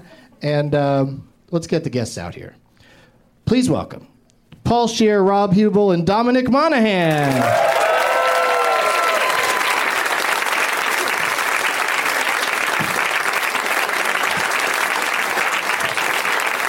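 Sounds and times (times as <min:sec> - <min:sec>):
speech: 0:00.4 - 0:02.6, 0:03.5 - 0:04.1, 0:04.7 - 0:07.7
audience applause: 0:07.1 - 0:16.6.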